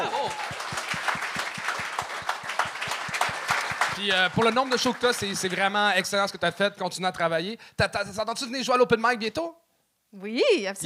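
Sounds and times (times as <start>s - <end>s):
audience applause: 0.0s - 6.0s
speech: 4.0s - 10.8s.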